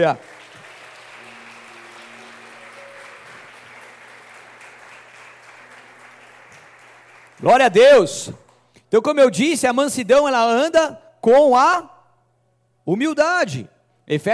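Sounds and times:
speech: 0:00.0 - 0:00.3, 0:07.4 - 0:11.9, 0:12.8 - 0:14.3
crowd clapping loudly: 0:00.0 - 0:07.8.

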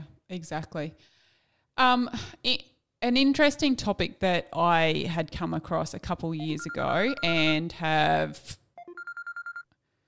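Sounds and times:
speech: 0:00.3 - 0:01.2, 0:01.8 - 0:08.6
faint electronic phone ringtone from an incoming spam call: 0:06.4 - 0:07.5, 0:08.8 - 0:09.7.

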